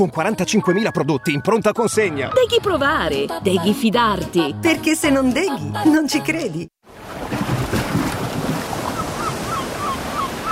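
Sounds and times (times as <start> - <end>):
speech: 0.0 - 6.8
sea waves breaking on a shore: 6.8 - 10.4.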